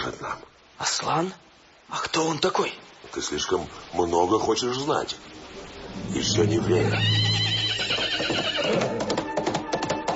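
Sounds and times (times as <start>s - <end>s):
speech: 0.1s - 9.2s
horse neighing in a long wavering whinny: 6.4s - 9.2s
faint hoof clopping: 7.6s - 10.1s.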